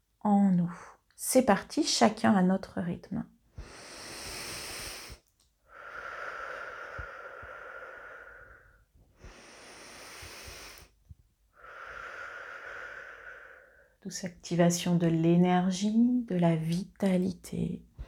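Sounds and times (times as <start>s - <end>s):
speech: 0.2s - 3.4s, 14.1s - 17.9s
slow deep breathing during a guided breathing exercise: 3.5s - 14.0s.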